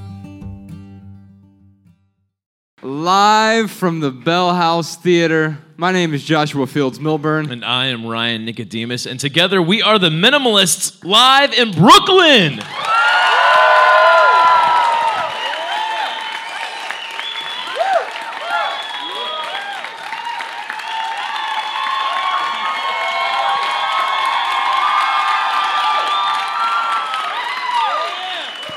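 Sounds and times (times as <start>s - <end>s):
speech: 2.8s - 12.9s
live theater audience applause at the Bell House in Brooklyn: 12.4s - 28.7s.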